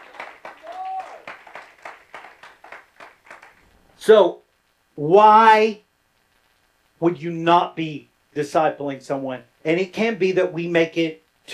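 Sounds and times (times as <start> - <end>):
church audience clapping: 0.0 - 3.8
speech: 4.0 - 4.4, 5.0 - 5.8, 7.0 - 11.5.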